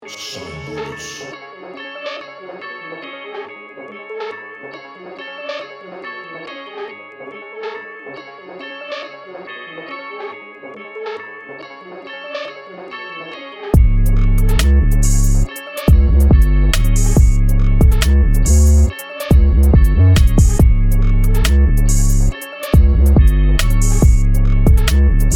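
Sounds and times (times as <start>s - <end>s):
music beat: 13.8s - 25.3s.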